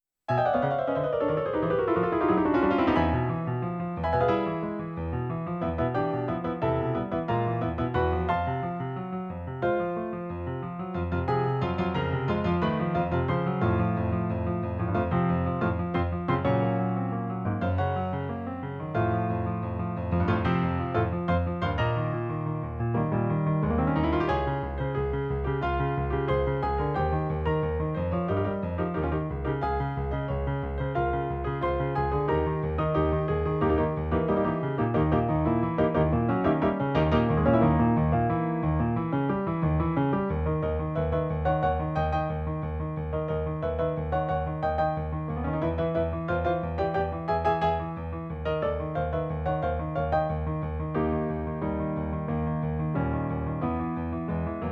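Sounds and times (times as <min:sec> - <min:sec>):
piano: 0:00.0 - 0:54.7.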